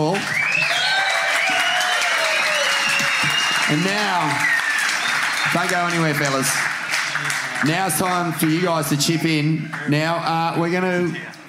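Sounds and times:
audience applause: 0.0 - 10.1
whistles and cheers: 0.1 - 6.4
speech: 5.6 - 6.7, 7.6 - 11.3.

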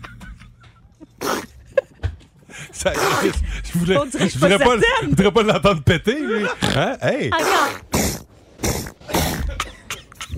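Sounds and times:
laughter: 0.0 - 6.6, 9.2 - 10.3
sneeze: 1.2 - 1.5, 3.0 - 3.4, 7.4 - 9.6
speech: 2.8 - 7.8.

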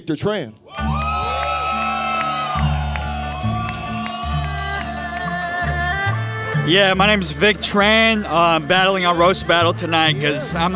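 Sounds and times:
speech: 0.0 - 1.0, 6.7 - 10.7
audience cheering and whooping: 0.7 - 6.0
loud bass-heavy music: 0.8 - 10.7.

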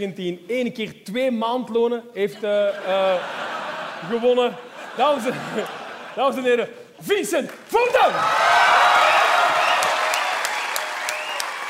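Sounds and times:
speech: 0.0 - 3.4, 4.0 - 8.6
laughter: 2.2 - 6.8
crowd applauding: 7.5 - 11.6.

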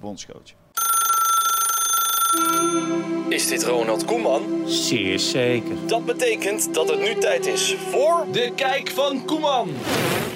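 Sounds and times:
speech: 0.0 - 0.6, 2.3 - 10.3
telephone ringing: 0.8 - 3.0.

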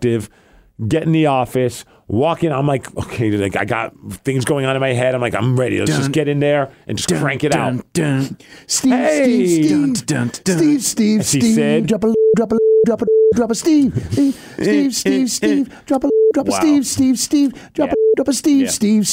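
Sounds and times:
man talking rapidly: 0.0 - 19.1
speech: 0.0 - 19.1
flat mid-pitched censor beeps over swearing: 12.0 - 13.5, 16.0 - 16.8, 17.8 - 18.3.

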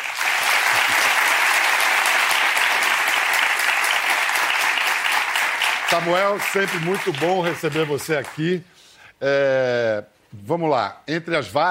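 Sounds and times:
audience applause: 0.0 - 8.4
speech: 5.9 - 11.7.

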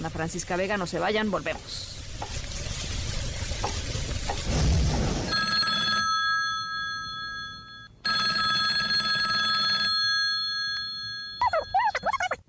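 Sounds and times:
speech: 0.0 - 2.5
sizzling frying sound: 0.0 - 5.5
telephone ringing: 5.3 - 12.2.

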